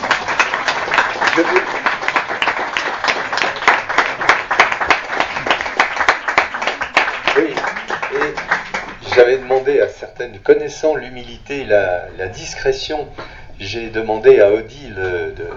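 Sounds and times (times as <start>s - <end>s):
audience applause thanking a kitchen team: 0.0s - 9.8s
speech: 1.4s - 1.6s, 9.2s - 15.2s.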